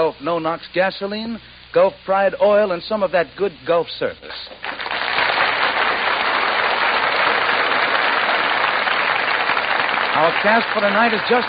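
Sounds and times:
speech: 0:00.1 - 0:04.8, 0:10.2 - 0:11.4
studio audience burst of applause: 0:04.6 - 0:11.4.

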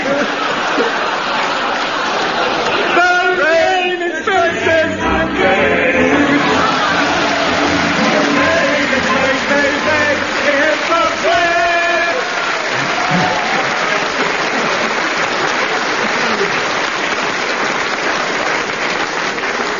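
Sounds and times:
laughter: 0:00.0 - 0:16.7
audience applause: 0:00.0 - 0:19.7
person cheering: 0:06.4 - 0:14.3.

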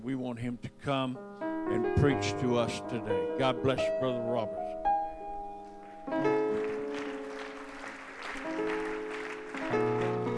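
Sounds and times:
speech: 0:00.0 - 0:04.8
audience clapping: 0:05.7 - 0:10.3.

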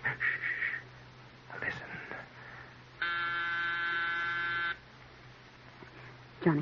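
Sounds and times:
faint hum: 0:00.0 - 0:06.6
electric doorbell buzzing: 0:03.0 - 0:04.8
speech: 0:06.4 - 0:06.6.

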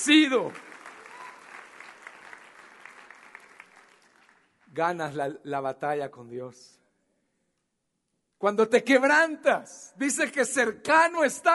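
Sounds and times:
speech: 0:00.0 - 0:00.7, 0:04.8 - 0:06.8, 0:08.4 - 0:11.5
church congregation clapping: 0:00.0 - 0:05.2.

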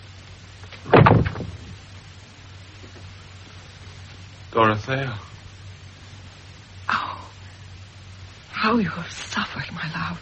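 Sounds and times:
faint low rumble: 0:00.0 - 0:10.2
door swinging shut: 0:00.8 - 0:01.8
speech: 0:04.6 - 0:05.3, 0:08.7 - 0:10.2.

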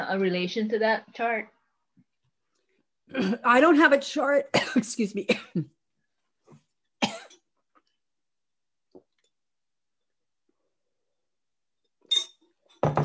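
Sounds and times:
speech: 0:00.1 - 0:01.6, 0:03.1 - 0:05.8
person coughing after a smoothie went down the wrong pipe: 0:03.1 - 0:03.5, 0:04.6 - 0:05.8, 0:07.0 - 0:07.4.

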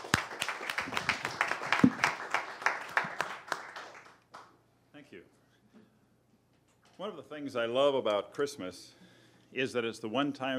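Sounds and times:
audience applause: 0:00.0 - 0:04.5
speech: 0:07.0 - 0:10.5.

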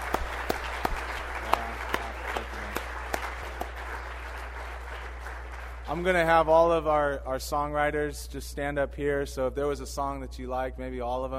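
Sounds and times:
small crowd applause: 0:00.0 - 0:06.4
speech: 0:05.9 - 0:11.3.

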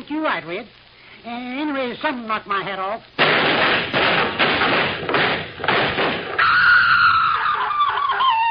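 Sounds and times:
speech: 0:00.1 - 0:06.2
booming gunshots: 0:03.2 - 0:06.5
high wavering wail: 0:06.4 - 0:08.4.

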